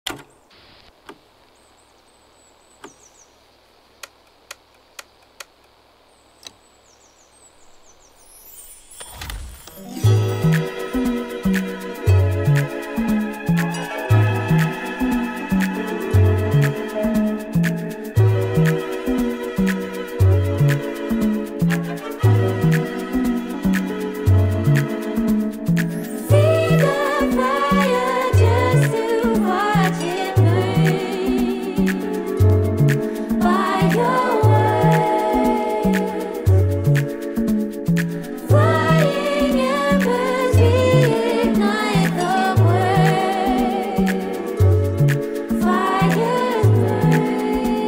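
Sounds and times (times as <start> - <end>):
jazz, Afro and Latin house music: 10.0 - 47.8.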